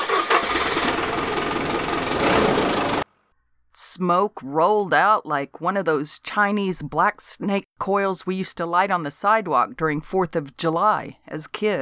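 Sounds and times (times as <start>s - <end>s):
Impala car engine starting and idling: 0.0s - 3.0s
speech: 4.0s - 11.8s.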